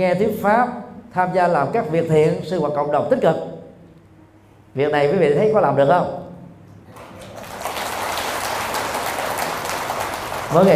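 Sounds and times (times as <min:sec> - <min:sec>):
speech: 0:00.0 - 0:03.6, 0:04.8 - 0:06.2, 0:10.5 - 0:10.7
audience applause: 0:06.9 - 0:10.7.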